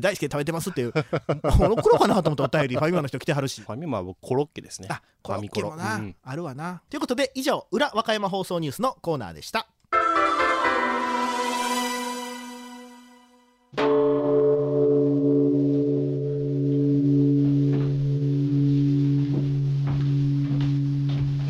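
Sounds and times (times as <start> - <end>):
speech: 0.0 - 9.8, 13.7 - 14.4
laughter: 0.8 - 3.0
Edo-period temple time bell of Okayama Jishodo in Wakayama City ringing: 10.0 - 21.4.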